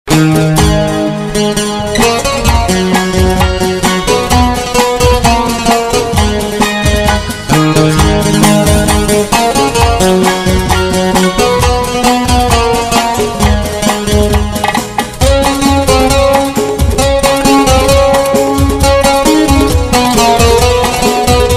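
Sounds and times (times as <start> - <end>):
instrumental music: 0.1 - 21.5.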